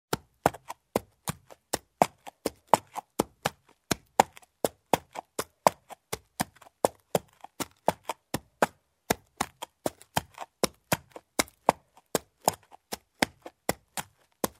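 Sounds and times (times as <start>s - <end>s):
horse hooves clopping: 0.1s - 14.5s.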